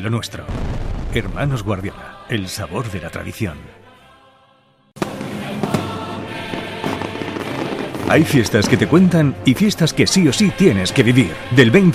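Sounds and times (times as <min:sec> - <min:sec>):
speech: 0:00.0 - 0:03.8, 0:08.1 - 0:11.9
fireworks and firecrackers for the Fogueres de San Juan in Alicante: 0:00.5 - 0:01.9, 0:05.0 - 0:09.0.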